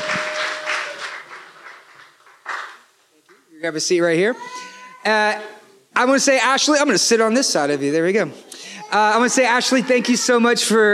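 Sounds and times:
audience applause: 0.0 - 2.9
speech: 3.6 - 10.9.

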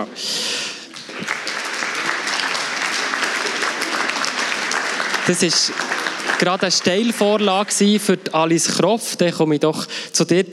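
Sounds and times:
speech: 0.0 - 0.4, 5.3 - 10.5
audience clapping: 0.8 - 8.4.

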